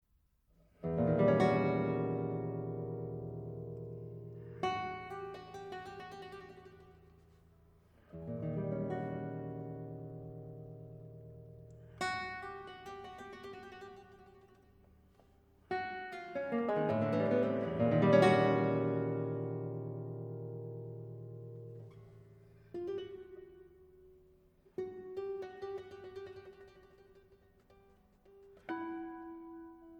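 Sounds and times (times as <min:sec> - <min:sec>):
guitar: 0:00.5 - 0:29.9.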